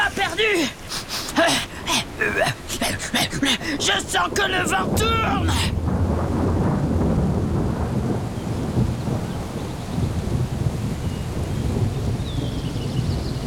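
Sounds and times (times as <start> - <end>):
light rain: 0.0 - 13.4
speech: 3.8 - 6.0
thunder: 3.8 - 13.4.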